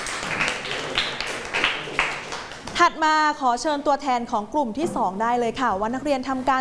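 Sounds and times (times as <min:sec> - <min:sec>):
students clapping in a classroom: 0:00.0 - 0:02.8
speech: 0:02.8 - 0:06.5.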